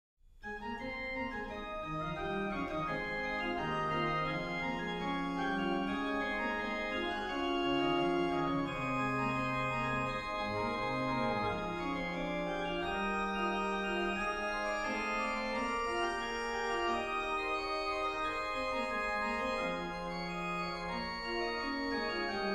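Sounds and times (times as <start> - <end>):
organ chorale prelude: 0.4 - 22.5.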